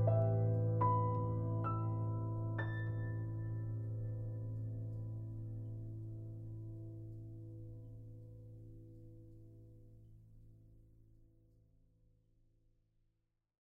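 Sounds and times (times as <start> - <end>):
piano solo: 0.0 - 7.2.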